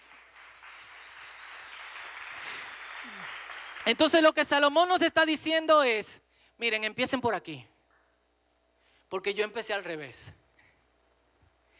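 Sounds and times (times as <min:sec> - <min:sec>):
audience applause: 0:00.0 - 0:04.0
speech: 0:03.0 - 0:07.7, 0:09.1 - 0:10.4.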